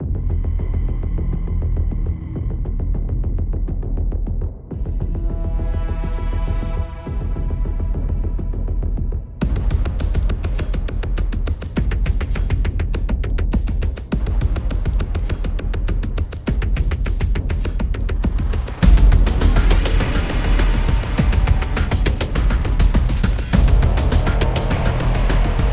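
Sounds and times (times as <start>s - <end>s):
dark horror background music: 0.0s - 25.7s.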